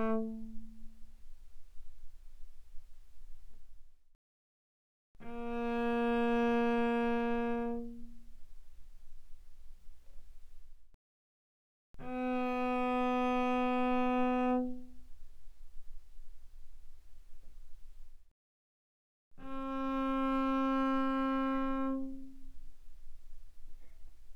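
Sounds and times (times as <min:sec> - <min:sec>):
cello bowed arco mezzo forte on the D string: 0:00.0 - 0:01.9, 0:05.2 - 0:10.2, 0:12.0 - 0:18.0, 0:19.4 - 0:24.3.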